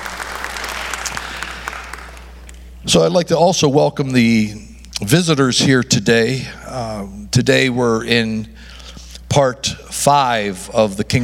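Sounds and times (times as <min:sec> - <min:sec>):
church service audience clapping: 0:00.0 - 0:02.6
speech: 0:02.8 - 0:08.7, 0:09.4 - 0:11.2.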